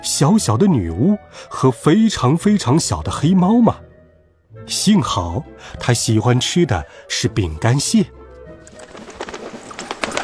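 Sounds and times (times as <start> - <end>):
speech: 0.0 - 3.8, 4.7 - 8.2
large bird landing on grass: 8.7 - 10.2.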